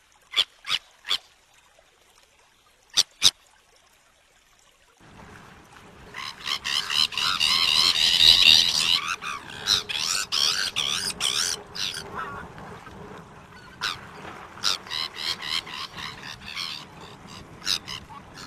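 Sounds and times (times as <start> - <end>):
Sabine's gull uttering rasping calls: 6.1 - 12.6, 13.4 - 18.4.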